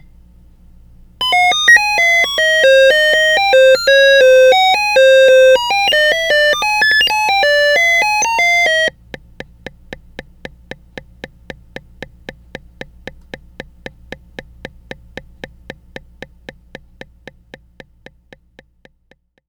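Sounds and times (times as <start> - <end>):
fusebox sound: 1.2 - 10.2.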